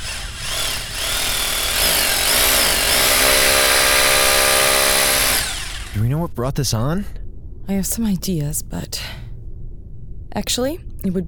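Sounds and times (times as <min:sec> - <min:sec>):
power tools taking apart blast doors: 0:00.0 - 0:06.0
speech: 0:06.2 - 0:09.2, 0:10.3 - 0:11.2.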